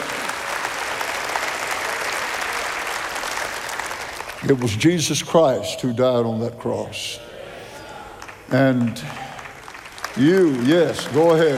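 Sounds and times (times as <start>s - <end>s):
audience clapping hands: 0.0s - 5.1s, 8.0s - 11.5s
speech: 4.4s - 7.3s, 8.5s - 9.3s, 10.2s - 11.5s.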